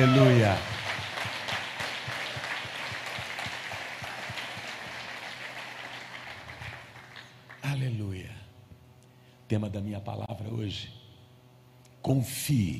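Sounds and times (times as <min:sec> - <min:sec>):
speech: 0:00.0 - 0:00.7, 0:09.5 - 0:11.0, 0:12.0 - 0:12.7
audience applauding: 0:00.0 - 0:07.7.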